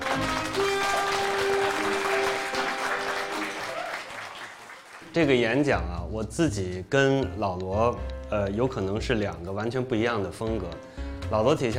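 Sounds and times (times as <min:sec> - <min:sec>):
large crowd applause: 0:00.0 - 0:05.1
speech: 0:05.2 - 0:11.7.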